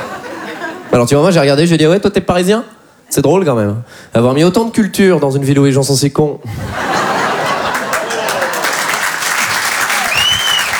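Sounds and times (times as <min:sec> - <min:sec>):
laughter: 0:00.0 - 0:01.0, 0:06.5 - 0:10.2
speech: 0:01.0 - 0:06.9
audience applause: 0:07.2 - 0:10.7.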